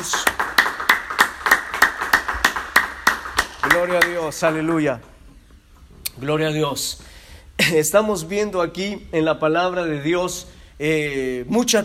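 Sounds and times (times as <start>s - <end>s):
audience clapping in unison: 0.0s - 4.8s
speech: 3.8s - 5.1s, 6.2s - 11.8s.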